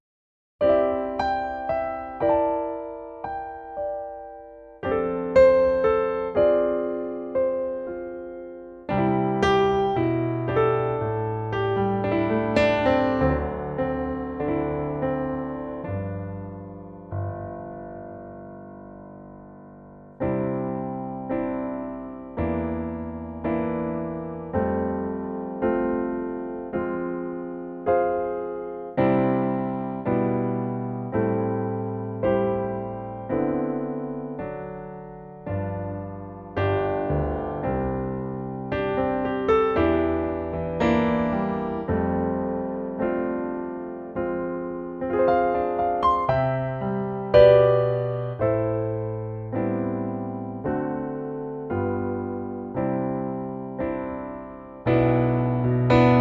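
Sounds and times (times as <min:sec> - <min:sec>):
piano note C: 0:00.6 - 0:56.1.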